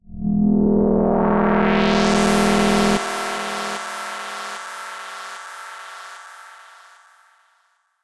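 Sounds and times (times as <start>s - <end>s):
delayed synth effect: 0.6s - 4.8s.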